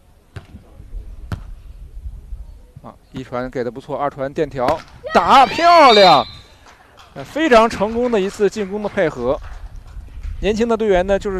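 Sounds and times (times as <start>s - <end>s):
faint noise: 0.0s - 11.3s
volleyball bounced on the court before a serve: 1.3s - 1.5s
speech: 2.8s - 6.4s, 7.2s - 9.5s, 10.4s - 11.3s.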